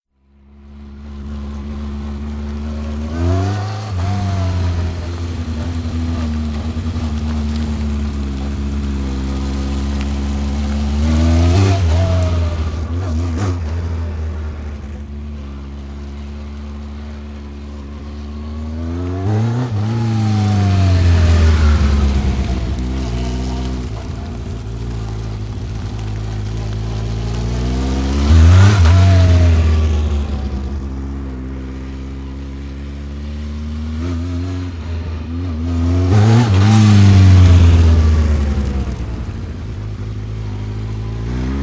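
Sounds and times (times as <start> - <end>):
Honda 1100 motorbike cruising around car park: 0.2 - 41.6.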